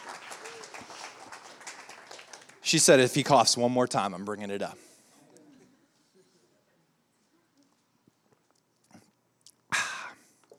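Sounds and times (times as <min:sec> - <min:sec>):
audience applause: 0:00.0 - 0:02.6
speech: 0:02.7 - 0:04.9.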